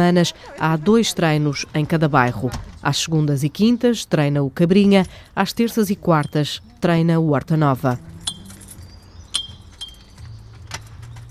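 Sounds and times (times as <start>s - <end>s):
speech: 0.0s - 8.1s
keys jangling at a new door lock: 7.9s - 11.2s.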